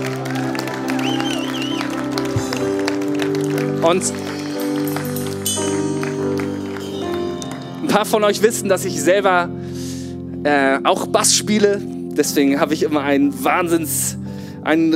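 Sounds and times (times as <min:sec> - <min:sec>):
audience applause for the band: 0:00.0 - 0:07.9
speech: 0:03.8 - 0:04.4, 0:07.9 - 0:09.6, 0:10.4 - 0:14.9.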